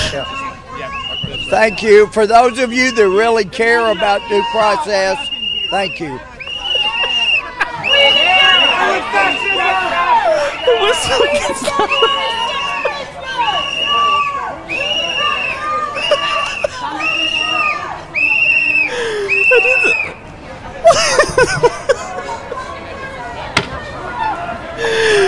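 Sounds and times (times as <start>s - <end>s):
shrill whistles blowing: 0.0s - 2.0s, 5.1s - 20.2s
noisy crowd with voices and shouting: 0.0s - 25.2s
speech: 0.2s - 6.3s, 10.6s - 12.5s
laughter: 6.4s - 13.4s, 15.1s - 17.8s, 18.8s - 23.3s, 24.2s - 25.2s.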